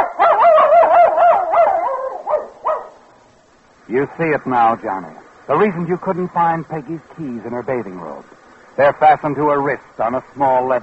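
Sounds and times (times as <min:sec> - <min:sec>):
dog barking excitedly: 0:00.0 - 0:03.0
speech: 0:03.9 - 0:10.8.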